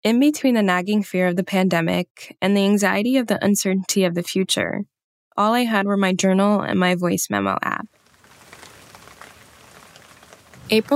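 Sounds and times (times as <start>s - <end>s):
speech: 0.0s - 8.0s, 10.7s - 10.9s
rain pattering: 7.9s - 10.9s.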